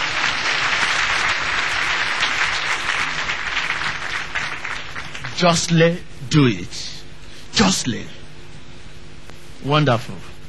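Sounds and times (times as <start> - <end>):
audience clapping: 0.0 - 5.8
speech: 5.4 - 7.0, 7.6 - 8.2, 9.6 - 10.3.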